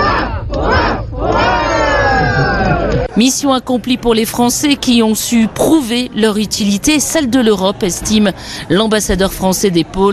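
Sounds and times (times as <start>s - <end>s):
crowd of Greenlanders giving a hurrah cheer: 0.0s - 3.1s
speech: 3.2s - 10.1s.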